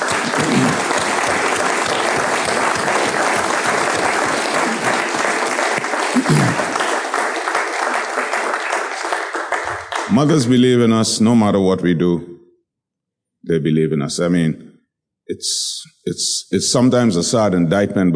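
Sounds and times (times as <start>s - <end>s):
audience applause: 0.0s - 10.5s
speech: 10.2s - 12.3s, 13.5s - 14.7s, 15.3s - 18.1s.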